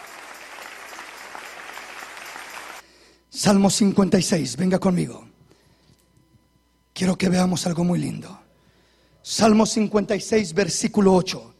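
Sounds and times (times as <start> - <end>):
audience applause: 0.0 - 2.8
speech: 3.4 - 5.3, 7.2 - 8.5, 9.3 - 11.5.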